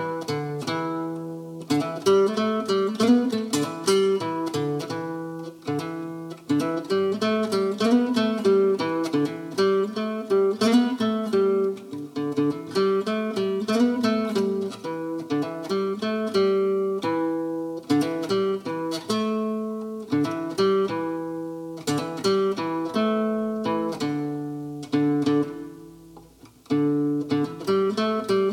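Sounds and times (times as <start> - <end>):
sixties-style guitar practice: 0.0 - 28.5.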